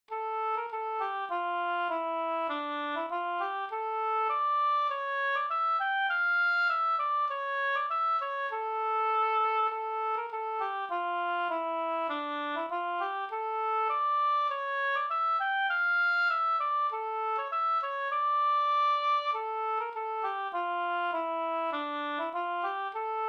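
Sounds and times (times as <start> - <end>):
farewell walking tune: 0.2 - 23.2.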